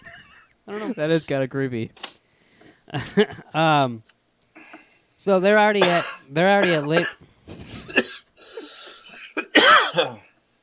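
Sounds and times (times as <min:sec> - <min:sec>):
speech: 0:00.7 - 0:02.0, 0:02.9 - 0:04.1, 0:05.2 - 0:08.1
person coughing from water in the throat: 0:05.8 - 0:07.2, 0:07.8 - 0:10.3.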